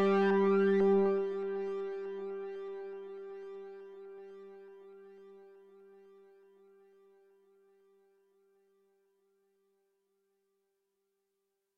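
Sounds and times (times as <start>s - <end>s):
ambient music: 0.0s - 3.7s.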